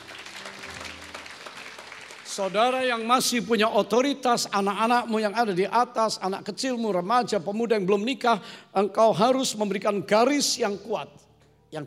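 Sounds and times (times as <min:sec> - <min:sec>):
audience applause: 0:00.0 - 0:03.1
speech: 0:02.4 - 0:11.8.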